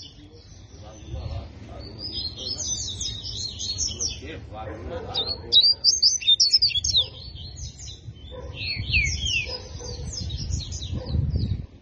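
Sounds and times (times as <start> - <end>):
double-collared seedeater twittering song: 0.0 - 11.8.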